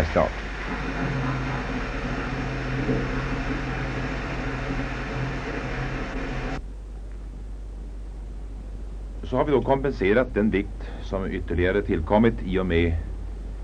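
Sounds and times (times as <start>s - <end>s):
speech: 0.0s - 1.2s, 2.8s - 3.8s, 9.3s - 13.1s
pressurised tank water draining into lower chamber: 0.0s - 6.6s.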